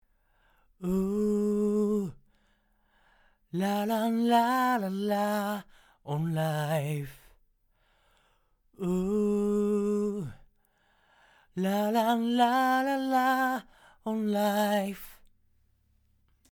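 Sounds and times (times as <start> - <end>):
vocals: 0.4 - 7.4, 8.2 - 15.3.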